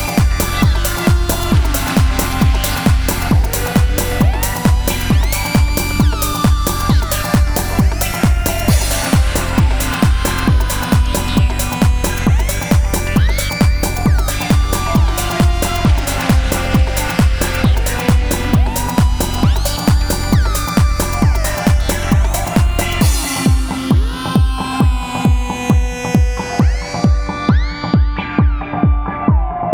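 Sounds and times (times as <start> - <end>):
oscillator tones in octaves: 0.0 - 29.6.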